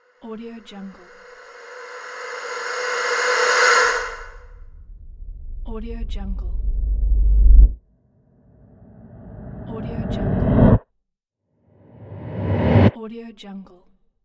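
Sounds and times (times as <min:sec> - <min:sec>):
rising sound: 0:00.7 - 0:07.8, 0:08.5 - 0:10.8, 0:11.9 - 0:13.0.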